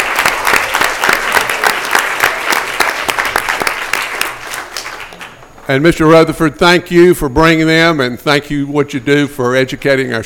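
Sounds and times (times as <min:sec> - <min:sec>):
audience applause: 0:00.0 - 0:05.6
speech: 0:05.7 - 0:10.2.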